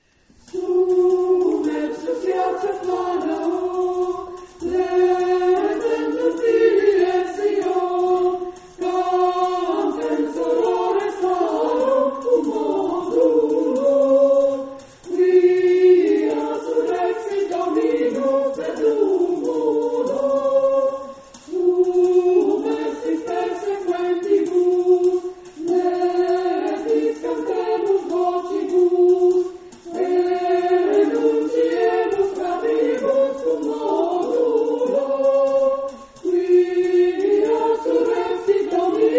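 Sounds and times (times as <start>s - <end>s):
choir singing: 0.4s - 39.1s.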